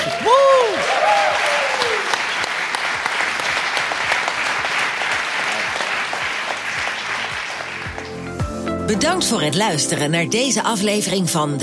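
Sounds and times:
audience applause: 0.0 - 8.4
speech: 8.9 - 11.6.

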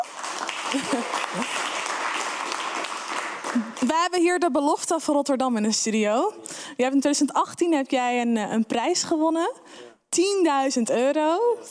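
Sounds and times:
studio applause: 0.0 - 4.2
speech: 0.7 - 1.7, 3.6 - 11.6.

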